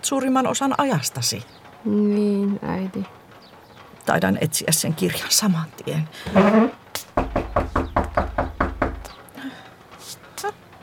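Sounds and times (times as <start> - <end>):
speech: 0.0 - 3.2, 4.0 - 7.1
knocking on a door: 6.2 - 9.2.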